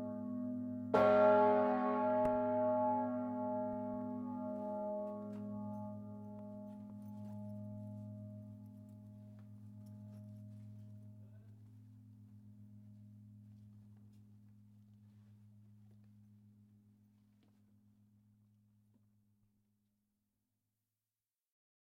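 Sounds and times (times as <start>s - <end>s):
bell in Lausanne: 0.0s - 14.4s.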